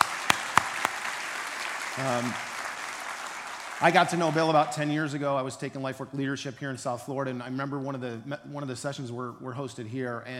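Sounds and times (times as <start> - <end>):
audience applause: 0.0 - 5.2
speech: 2.0 - 2.5, 3.8 - 10.3.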